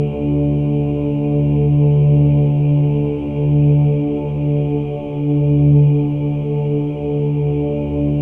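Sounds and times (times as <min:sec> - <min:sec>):
chorus of voices: 0:00.0 - 0:08.2.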